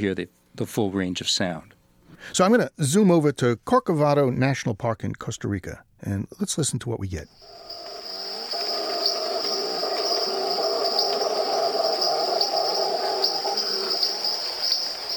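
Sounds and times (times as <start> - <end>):
speech: 0.0 - 7.7
Costa Rican rainforest insect drone: 7.3 - 15.1
Costa Rican rainforest tree frogs peeping: 7.3 - 15.1
Costa Rican rainforest howler monkey roaring: 7.6 - 15.1.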